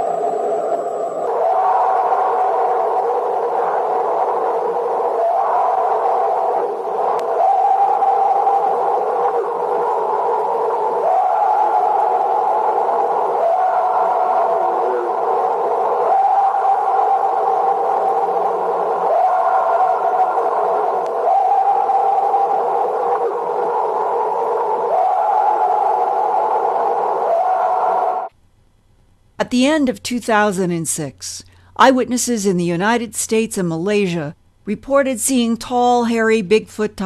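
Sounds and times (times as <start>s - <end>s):
alleged Sasquatch high-pitched scream: 0.0s - 28.3s
speech: 29.5s - 37.0s.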